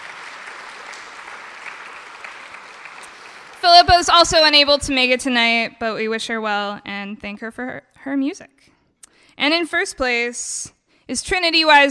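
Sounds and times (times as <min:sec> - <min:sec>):
audience applause: 0:00.0 - 0:04.3
speech: 0:03.7 - 0:08.7, 0:09.4 - 0:11.8.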